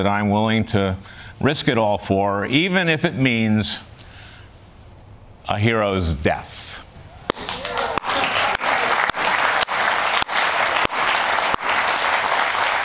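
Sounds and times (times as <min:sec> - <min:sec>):
speech: 0:00.0 - 0:03.9, 0:05.5 - 0:06.6
studio audience applause: 0:07.3 - 0:12.8.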